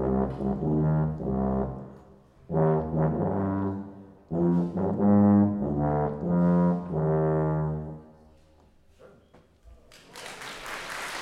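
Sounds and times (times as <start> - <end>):
solo tuba: 0.0 - 8.5.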